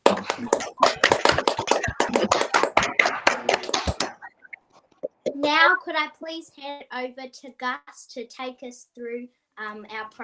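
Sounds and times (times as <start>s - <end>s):
group applauding: 0.0s - 4.3s
speech: 5.9s - 10.2s.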